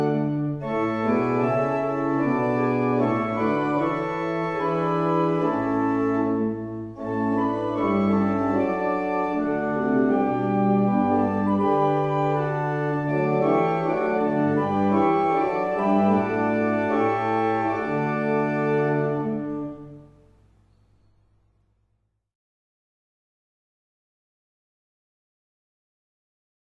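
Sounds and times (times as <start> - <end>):
barrel organs: 0.0 - 21.0.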